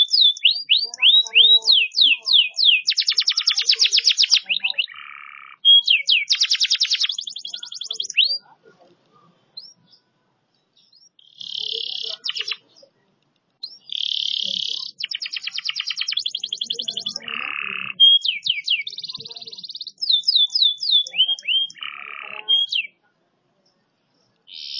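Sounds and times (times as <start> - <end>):
canary song: 0.0 - 24.7.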